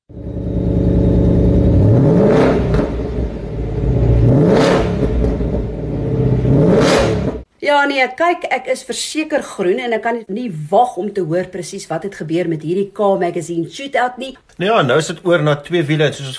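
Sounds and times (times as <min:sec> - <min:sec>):
supercharged Ford V8 engine exhaust revving: 0:00.1 - 0:07.4
speech: 0:07.7 - 0:16.3.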